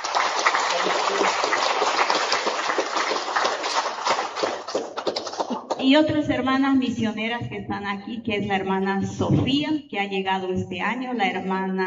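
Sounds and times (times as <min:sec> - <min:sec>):
crowd applauding: 0:00.0 - 0:05.8
speech: 0:05.8 - 0:11.8.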